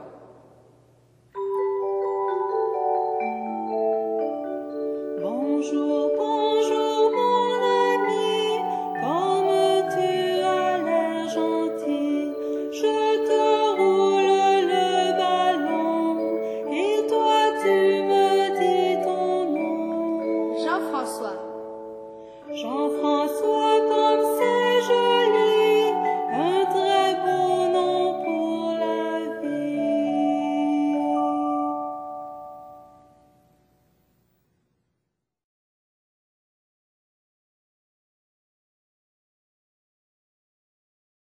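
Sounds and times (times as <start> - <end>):
presentation song: 1.3 - 33.4.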